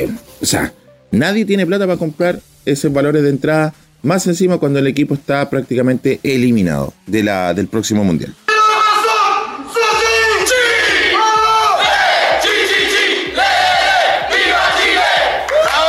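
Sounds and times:
speech: 0.0s - 8.4s
crowd chanting a cheer: 9.3s - 15.7s.

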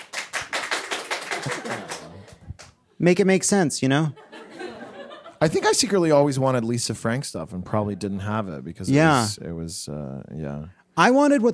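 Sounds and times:
scattered audience clapping: 0.0s - 2.8s
laughter: 1.2s - 2.5s, 4.2s - 5.9s
speech: 3.0s - 4.2s, 5.4s - 11.5s.

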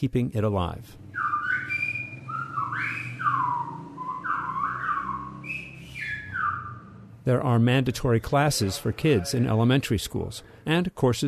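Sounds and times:
speech: 0.0s - 1.3s, 7.2s - 11.2s
Silbo whistled language: 1.1s - 7.1s.

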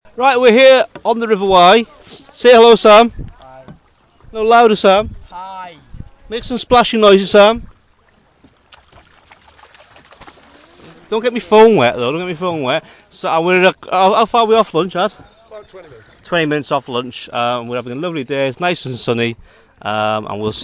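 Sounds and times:
paddling: 0.0s - 20.6s.

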